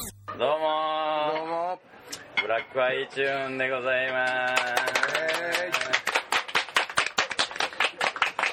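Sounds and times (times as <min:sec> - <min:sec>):
speech: 0:00.4 - 0:00.9, 0:02.5 - 0:06.0
audience clapping: 0:04.1 - 0:08.5.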